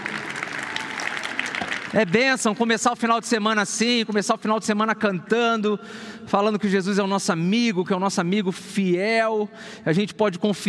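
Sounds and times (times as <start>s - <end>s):
audience applause: 0.0s - 2.6s
speech: 1.9s - 10.6s.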